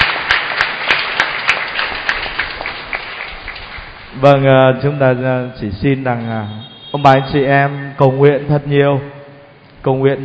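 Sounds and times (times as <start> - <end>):
audience clapping: 0.0 - 4.2
speech: 4.2 - 9.2, 9.8 - 10.2.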